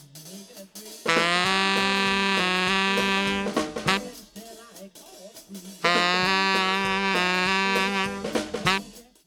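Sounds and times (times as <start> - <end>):
saxophone compressed with LA-2A: 1.1 - 4.4, 5.8 - 9.1.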